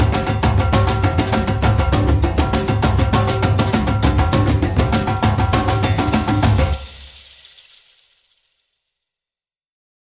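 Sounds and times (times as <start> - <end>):
African drums playing: 0.0 - 7.9.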